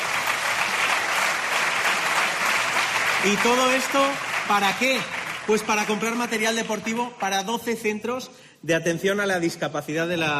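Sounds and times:
applause: 0.0 - 7.9
speech: 3.2 - 10.3.

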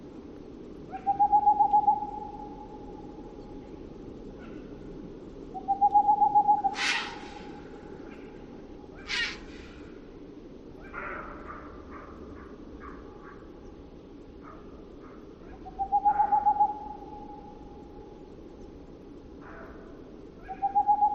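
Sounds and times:
boreal owl pulsing hoot: 0.9 - 2.8, 5.6 - 8.4, 9.0 - 9.9, 15.5 - 17.4, 20.4 - 21.1.

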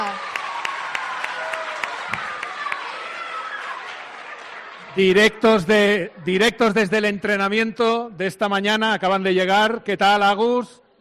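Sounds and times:
audience applause: 0.0 - 5.2
speech: 5.0 - 10.8.

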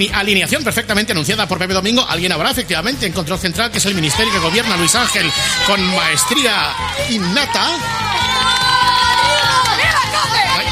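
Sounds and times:
speech: 0.0 - 9.1
children cheering ovation: 3.8 - 10.7.

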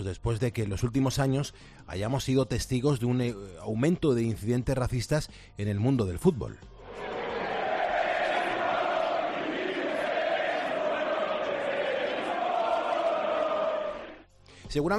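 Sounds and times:
speech: 0.0 - 7.2, 14.7 - 14.9
large stadium crowd chanting insults: 6.9 - 14.2.

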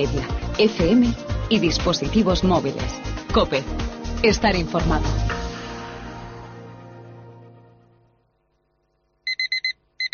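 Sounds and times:
speech: 0.0 - 5.4
car door-open warning chime: 9.3 - 10.1.

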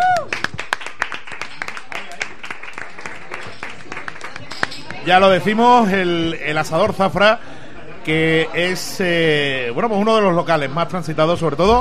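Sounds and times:
small group applauding: 0.0 - 5.1
speech: 5.0 - 11.7.

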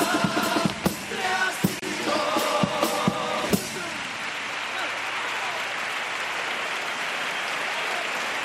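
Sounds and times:
standing theatre audience applauding: 0.2 - 8.4.

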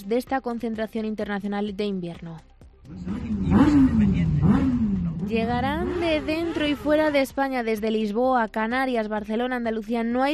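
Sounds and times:
speech: 0.0 - 4.6, 5.3 - 10.3
motorcycle engines roaring at the Pingüinos winter rally in Valladolid: 2.9 - 7.2.

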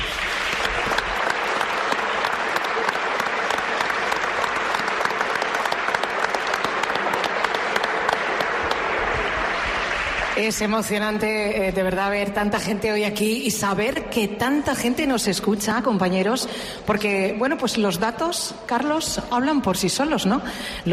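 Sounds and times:
audience applause: 0.0 - 11.1
speech: 10.4 - 20.9.

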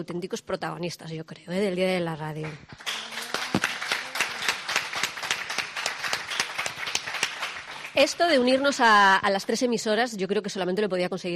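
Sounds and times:
speech: 0.0 - 3.0, 8.0 - 11.3
audience applause: 2.8 - 8.8.

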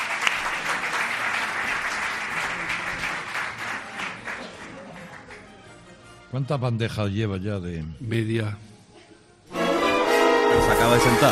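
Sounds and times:
crowd applauding: 0.0 - 5.5
speech: 6.3 - 8.7, 10.6 - 11.2.

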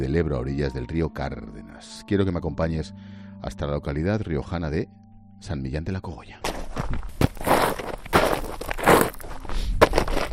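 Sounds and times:
speech: 0.0 - 7.1
footsteps on a gravelly path: 6.4 - 10.3.

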